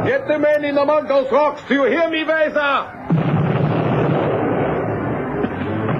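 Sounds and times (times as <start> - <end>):
speech: 0.0 - 3.4
rocket and bomb blasts: 3.0 - 5.9
aircraft rumble: 3.8 - 5.9.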